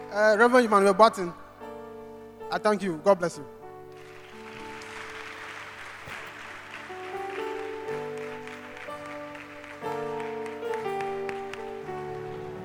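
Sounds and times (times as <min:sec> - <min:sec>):
speech: 0:00.1 - 0:01.4, 0:02.5 - 0:03.6
audience clapping: 0:03.9 - 0:12.6.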